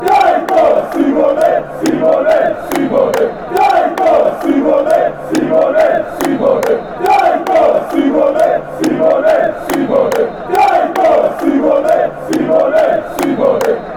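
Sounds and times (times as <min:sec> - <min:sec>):
football fans chanting: 0:00.0 - 0:13.9.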